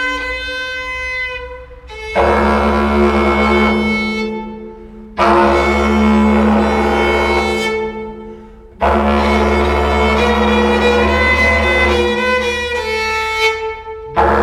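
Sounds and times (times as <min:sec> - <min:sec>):
tunnel noises in a tunnel: 0:00.0 - 0:14.4.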